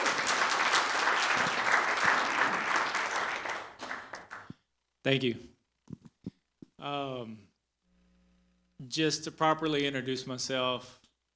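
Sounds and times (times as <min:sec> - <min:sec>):
audience applause and hand clapping: 0:00.0 - 0:04.6
speech: 0:05.0 - 0:05.5, 0:06.8 - 0:07.5, 0:08.8 - 0:11.0.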